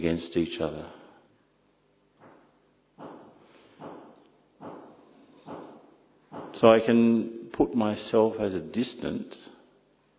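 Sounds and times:
speech: 0.0s - 1.0s, 6.6s - 9.5s
hammering: 2.2s - 6.6s.

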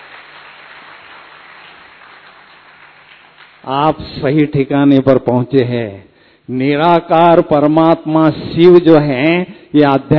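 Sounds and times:
audience clapping: 0.0s - 3.8s
speech: 3.6s - 10.1s.

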